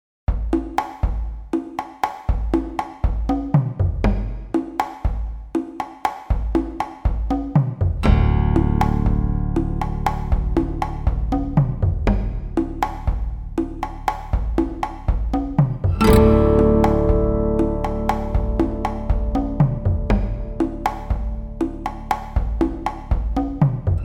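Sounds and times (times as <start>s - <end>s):
world music beats: 0.3s - 24.0s.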